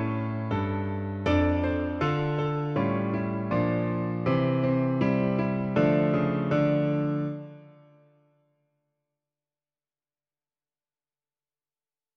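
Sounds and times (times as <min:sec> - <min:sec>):
piano version of a piece: 0:00.0 - 0:08.2.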